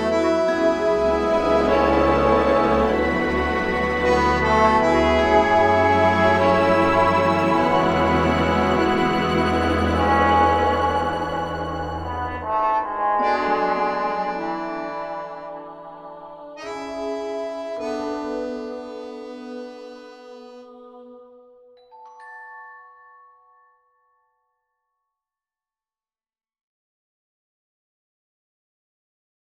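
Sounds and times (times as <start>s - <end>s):
sad cartoon film score: 0.0s - 21.4s.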